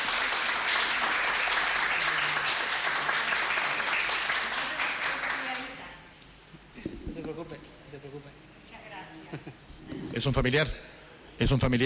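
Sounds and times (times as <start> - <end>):
audience applause: 0.0 - 5.8
speech: 10.2 - 11.8.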